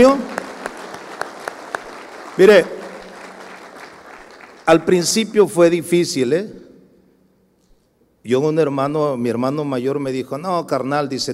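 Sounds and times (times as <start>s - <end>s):
speech: 0.0s - 0.3s, 2.4s - 2.8s, 4.7s - 6.6s, 8.2s - 11.3s
audience applause: 0.0s - 5.0s.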